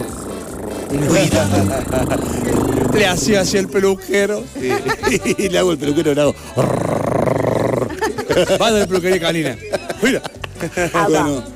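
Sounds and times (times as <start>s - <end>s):
human voice imitating a cat purring: 0.0s - 4.1s, 6.5s - 8.2s
speech: 0.9s - 7.0s, 7.8s - 11.5s
laughter: 1.0s - 3.3s, 4.4s - 6.6s, 7.8s - 11.4s.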